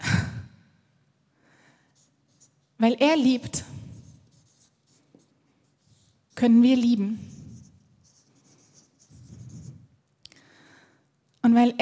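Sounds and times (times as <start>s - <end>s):
handwriting scratching: 2.0s - 2.7s, 3.8s - 9.9s
speech: 2.8s - 3.7s, 6.4s - 7.3s, 11.6s - 11.8s.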